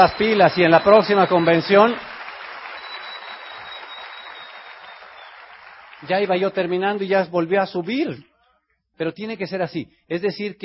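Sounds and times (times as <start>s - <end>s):
speech: 0.0s - 2.1s, 6.0s - 8.3s, 9.0s - 10.6s
convention audience applause: 0.0s - 7.3s.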